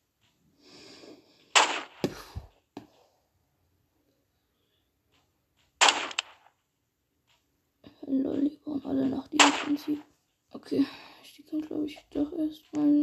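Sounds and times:
sniper rifle shots in a video game: 1.5 - 2.2, 5.8 - 6.5, 9.4 - 10.0
speech: 8.1 - 13.0.

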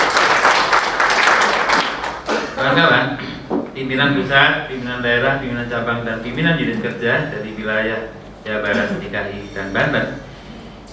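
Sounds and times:
applause from a seminar audience at an industrial-relations event: 0.0 - 2.5
speech: 3.8 - 10.2.

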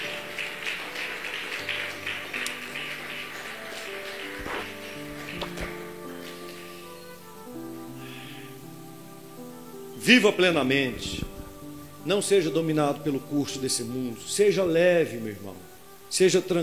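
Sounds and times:
audience applauding: 0.0 - 7.4
speech: 10.1 - 11.2, 12.0 - 16.6.

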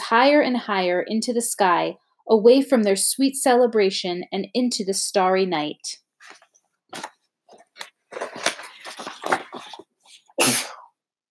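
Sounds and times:
speech: 0.1 - 7.1
sneeze: 10.4 - 10.9.

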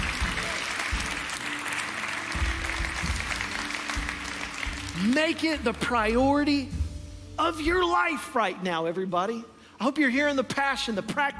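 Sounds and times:
audience clapping hands: 0.0 - 6.1
speech: 5.0 - 6.8, 7.4 - 11.3.

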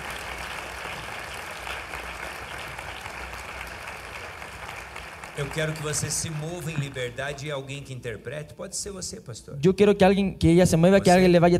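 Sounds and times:
audience applause: 0.0 - 7.9
speech: 5.4 - 11.5.

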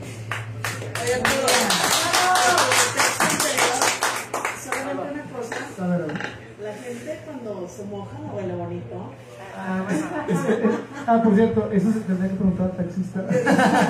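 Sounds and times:
audience applause: 0.2 - 4.9
speech: 1.0 - 2.9, 6.9 - 13.8
laughter: 9.6 - 11.2, 13.2 - 13.8.

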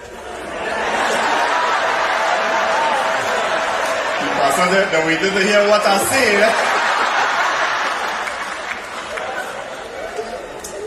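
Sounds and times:
laughter: 0.3 - 10.8
audience clapping hands: 1.0 - 4.8, 6.2 - 10.4
speech: 4.6 - 6.6.

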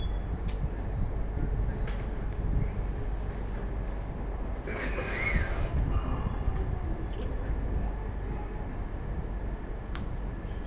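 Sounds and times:
train interior rumble on the Tohoku Main Line: 0.0 - 10.4
brief squeal: 4.7 - 5.7.

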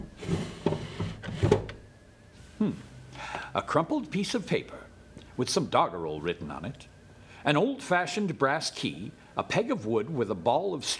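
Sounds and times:
wooden box sliding lid opening: 0.0 - 1.8
speech: 2.6 - 2.9, 3.6 - 4.8, 5.4 - 10.9.

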